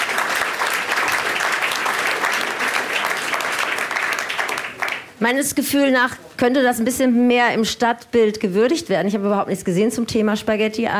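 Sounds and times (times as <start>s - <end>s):
live audience applause: 0.0s - 5.2s
speech: 5.2s - 10.9s.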